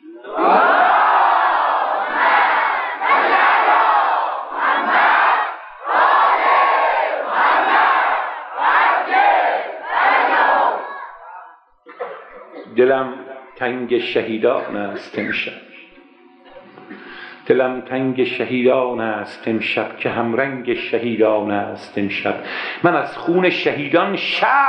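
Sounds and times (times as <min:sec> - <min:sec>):
laughter: 0:00.0 - 0:02.3, 0:11.8 - 0:17.2
crowd chanting salawat in unison: 0:00.2 - 0:11.6
speech: 0:12.8 - 0:15.6, 0:17.5 - 0:24.6.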